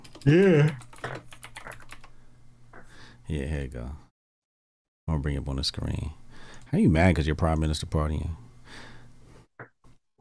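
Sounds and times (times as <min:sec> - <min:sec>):
typing a search on a computer keyboard: 0:00.0 - 0:02.1
speech: 0:00.2 - 0:00.8, 0:03.3 - 0:04.0, 0:05.1 - 0:08.9.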